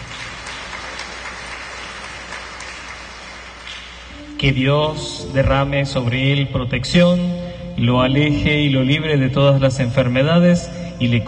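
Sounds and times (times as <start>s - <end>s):
audience applause: 0.0s - 4.1s
speech: 4.4s - 11.2s.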